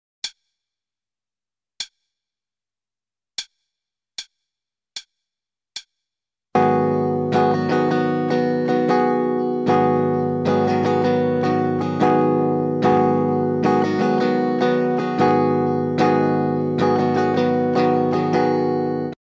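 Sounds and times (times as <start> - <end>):
starter guitar rhythm: 6.6 - 19.2.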